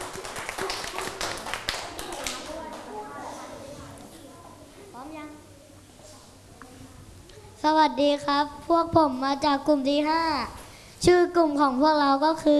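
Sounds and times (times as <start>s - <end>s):
group clapping hands: 0.0s - 3.1s
speech: 7.6s - 12.5s.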